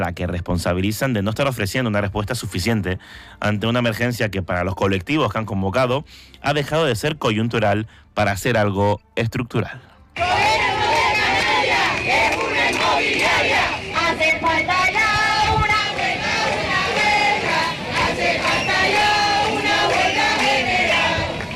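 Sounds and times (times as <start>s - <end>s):
speech: 0.0s - 10.5s
street protest crowd chanting: 10.2s - 21.5s.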